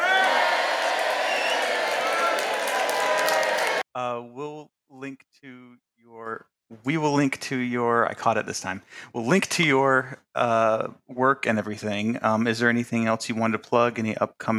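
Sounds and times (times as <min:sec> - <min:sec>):
applause: 0:00.0 - 0:03.8
crowd cheering: 0:00.0 - 0:03.9
speech: 0:05.1 - 0:14.5.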